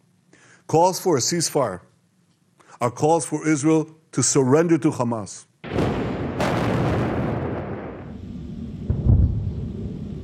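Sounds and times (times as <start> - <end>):
speech: 0.7 - 1.9, 2.8 - 5.5
explosions from Israeli airstrikes: 5.6 - 10.2.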